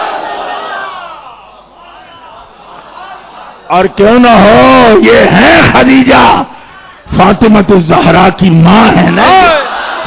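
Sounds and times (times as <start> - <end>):
crowd at a religious gathering shouting in unison: 0.0 - 3.7, 9.2 - 10.0
speech: 3.7 - 6.5, 7.1 - 9.6.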